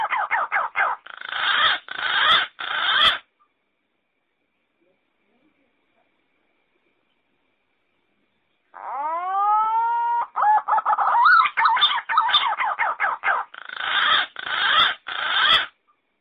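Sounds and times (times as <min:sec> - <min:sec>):
thick-billed green pigeon calling: 0:00.0 - 0:03.3, 0:08.7 - 0:15.8.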